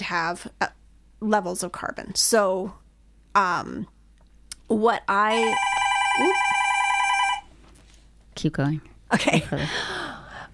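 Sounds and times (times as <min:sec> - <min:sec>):
speech: 0:00.1 - 0:02.8, 0:03.4 - 0:04.0, 0:04.7 - 0:06.4, 0:08.4 - 0:10.1
brand new phone ringing at a radio station: 0:05.3 - 0:07.5.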